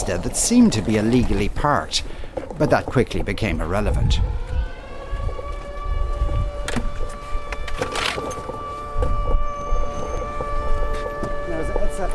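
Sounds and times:
speech: 0.1s - 4.5s
low rumble: 3.3s - 11.8s
air raid siren wailing: 3.5s - 12.1s.

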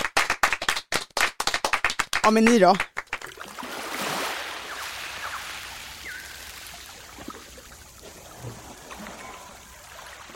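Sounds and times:
brisk hand clapping: 0.0s - 3.4s
speech: 2.3s - 2.9s.

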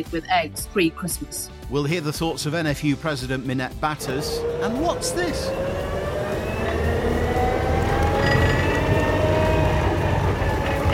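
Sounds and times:
speech: 0.0s - 6.0s
tractor engine running: 4.0s - 10.9s.

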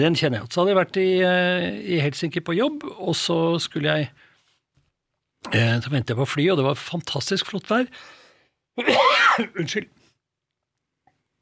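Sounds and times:
speech: 0.0s - 4.2s, 5.4s - 8.2s, 8.8s - 10.0s
harsh coughing: 8.8s - 9.9s.

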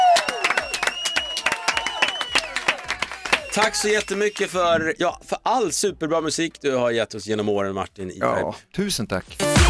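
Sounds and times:
audience applause: 0.0s - 4.6s
speech: 3.6s - 9.6s.

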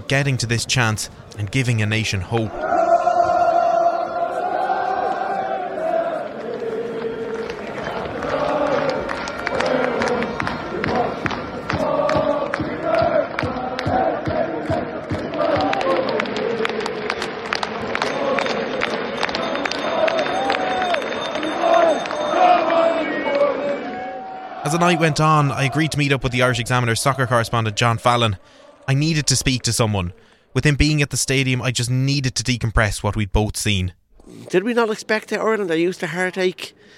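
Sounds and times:
massed voices of Irish football supporters: 0.0s - 30.2s
speech: 0.1s - 2.8s, 24.9s - 36.9s
travelling Irish football supporters roaring in the Fortuna Arena: 2.4s - 29.6s
rhythmic clapping of Irish football supporters: 6.3s - 23.4s.

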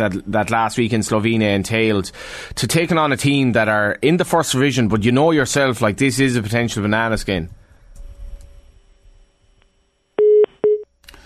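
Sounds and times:
speech: 0.0s - 7.6s
phone line hang-up tone beeps: 10.2s - 10.8s.

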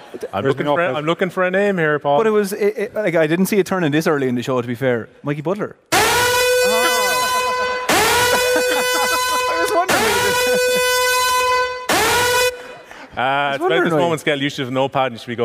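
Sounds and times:
laughter: 0.0s - 0.9s, 6.6s - 11.2s, 12.5s - 14.3s
speech: 0.1s - 5.9s, 13.2s - 15.4s
siren horn sound effect: 5.9s - 12.9s.

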